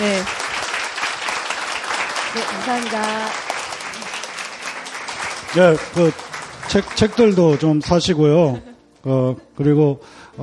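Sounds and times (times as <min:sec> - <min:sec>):
audience applause: 0:00.0 - 0:08.4
speech: 0:02.4 - 0:03.5, 0:05.5 - 0:10.4.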